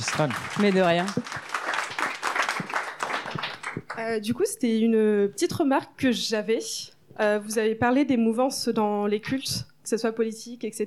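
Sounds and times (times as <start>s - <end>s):
speech: 0.0s - 1.3s, 4.0s - 10.8s
audience applauding: 0.0s - 4.0s.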